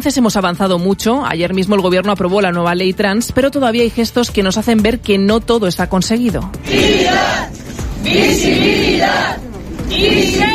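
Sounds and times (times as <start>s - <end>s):
speech: 0.0s - 10.5s
crowd of residents shouting and chanting outside the Cortes in Valladolid: 6.6s - 10.5s.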